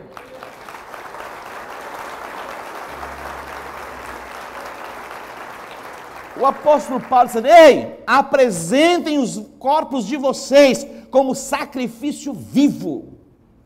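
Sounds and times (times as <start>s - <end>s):
large crowd applause: 0.0s - 7.5s
low hum: 2.8s - 5.3s
speech: 6.4s - 13.2s.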